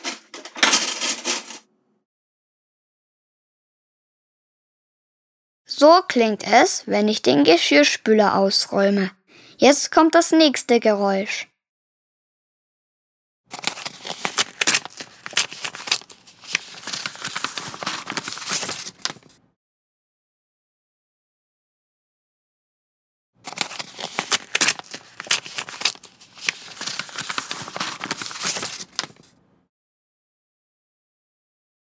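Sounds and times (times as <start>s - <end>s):
speech: 5.7s - 11.5s
envelope torn open: 13.5s - 19.3s, 23.5s - 29.3s
letter unfolded: 13.5s - 19.4s, 23.5s - 29.3s.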